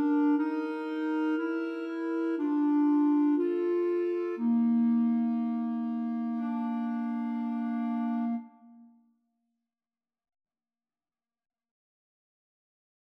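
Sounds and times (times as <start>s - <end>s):
clarinet trio: 0.0s - 8.8s.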